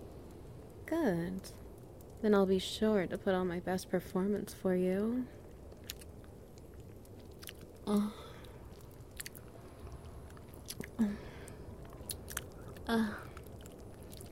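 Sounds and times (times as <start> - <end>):
faint crackles: 0.0 - 14.3
steady hissing background: 0.0 - 14.3
speech: 0.9 - 1.6, 2.2 - 5.4, 7.9 - 8.2, 12.9 - 13.2
biting and chewing: 5.4 - 14.3
low hum of voice: 12.8 - 13.4.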